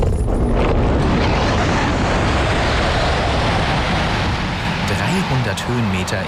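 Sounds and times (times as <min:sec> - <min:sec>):
rushing roar of wind and airframe noise during glider winch launch: 0:00.0 - 0:06.2
speech: 0:05.6 - 0:06.2.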